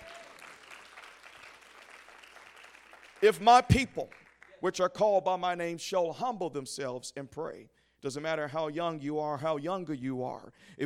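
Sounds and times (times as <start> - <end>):
audience clapping hands: 0.0 - 4.6
speech: 3.2 - 10.8.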